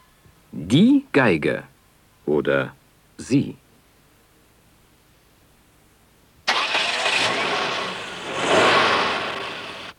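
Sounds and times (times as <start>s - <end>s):
speech: 0.6s - 1.7s, 2.3s - 3.6s
car engine: 6.5s - 9.9s.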